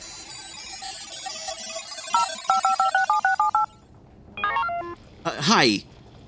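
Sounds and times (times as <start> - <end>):
brief higher electronic chirp: 1.2 - 3.7
touch-tone beeps of a phone number being keyed in: 2.2 - 3.7
speech: 5.5 - 5.9.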